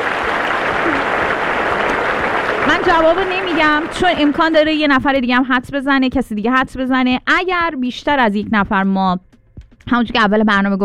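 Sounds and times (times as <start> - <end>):
audience at a guessing-game show applauding a contestant: 0.0 - 5.2
speech: 2.8 - 9.3, 9.9 - 10.8.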